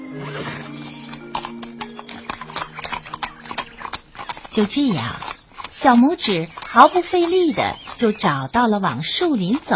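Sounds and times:
horse whinnying: 0:00.0 - 0:04.6
horse hooves clip-clopping while pulling a cart: 0:00.0 - 0:09.7
speech: 0:04.6 - 0:09.7.

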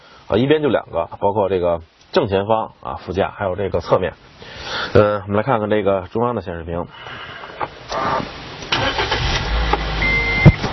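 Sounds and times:
speech: 0:00.3 - 0:08.2
Baojun 560 car engine starting: 0:07.8 - 0:10.7
short electronic beep: 0:10.0 - 0:10.6.

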